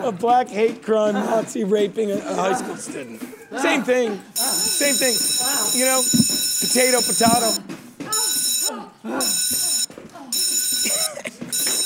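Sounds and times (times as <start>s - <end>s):
speech: 0.0s - 7.6s, 9.0s - 9.7s
people talking excitedly: 0.0s - 10.5s
laughter: 0.9s - 6.1s, 8.4s - 11.6s
shrill electric bell ringing: 4.4s - 11.8s.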